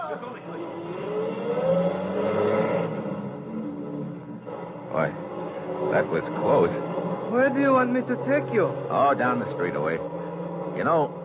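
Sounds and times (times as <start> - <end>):
truck engine droning and revving as it drives away: 0.0 - 11.2
speech: 5.0 - 5.2, 6.0 - 10.2, 10.8 - 11.2.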